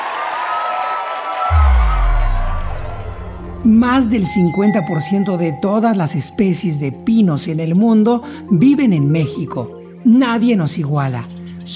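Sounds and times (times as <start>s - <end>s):
crowd ovation, cheering and applause: 0.0s - 3.1s
speech: 3.7s - 11.7s.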